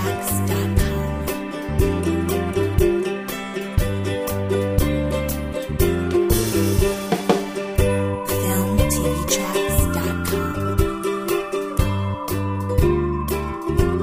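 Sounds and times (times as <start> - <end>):
folk mandolin music: 0.0 - 14.0.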